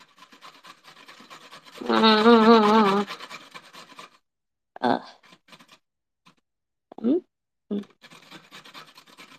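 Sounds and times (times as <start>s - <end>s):
carrot being grated: 0.0s - 4.2s, 4.9s - 5.8s, 7.8s - 9.3s.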